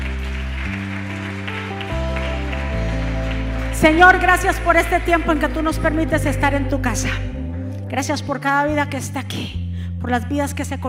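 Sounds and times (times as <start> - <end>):
loud applause: 0.0 - 5.8
speech: 3.8 - 7.3, 7.9 - 10.8.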